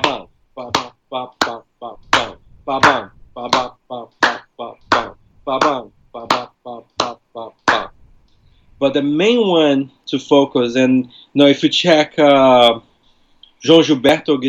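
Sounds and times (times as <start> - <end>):
voice imitating the samba agogo bell pattern: 0.0 - 8.0
speech: 1.1 - 2.0, 2.7 - 3.6, 8.9 - 12.8, 13.6 - 14.4.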